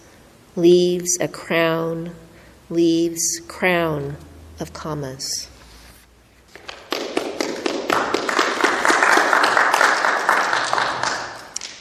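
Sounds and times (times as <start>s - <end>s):
speech: 0.6s - 5.5s
audience clapping between poems: 6.5s - 11.7s.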